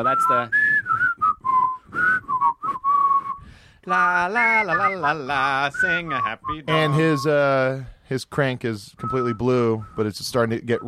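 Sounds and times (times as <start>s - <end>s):
speech: 0.0s - 0.6s, 3.9s - 10.8s
person whistling a bouncy cartoon theme tune: 0.0s - 3.6s, 4.3s - 7.6s, 9.0s - 10.8s.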